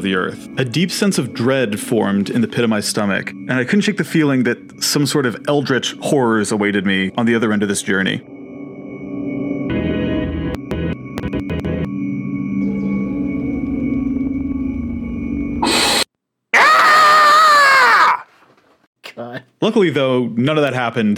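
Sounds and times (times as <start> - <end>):
speech: 0.0 - 8.4, 19.6 - 21.1
droning rumble with stuttering clicks: 9.3 - 15.6
human scream: 15.6 - 18.3.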